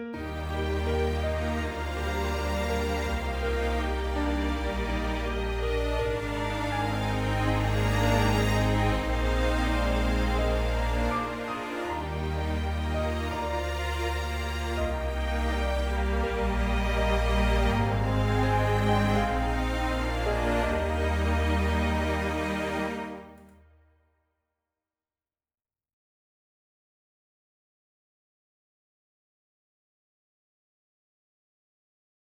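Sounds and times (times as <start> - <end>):
symphonic melody: 0.2 - 23.5.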